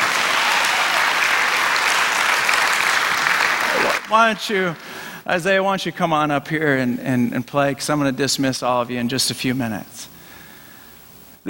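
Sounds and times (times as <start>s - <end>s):
audience applause: 0.0s - 5.0s
speech: 4.1s - 10.1s.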